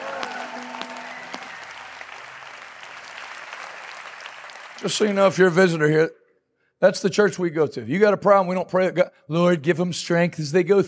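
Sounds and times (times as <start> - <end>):
audience applauding with hand claps: 0.0 - 5.8
speech: 4.8 - 6.2, 6.8 - 10.8.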